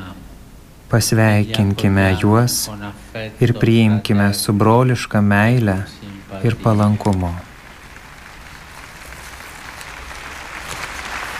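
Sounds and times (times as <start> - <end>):
speech: 0.9 - 7.5
young audience applauding the Pope's words: 5.4 - 11.3.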